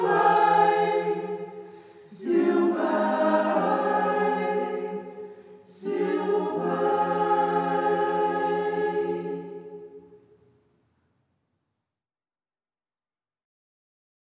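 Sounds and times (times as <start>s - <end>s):
singing circle in Braller local dialect: 0.0s - 10.3s.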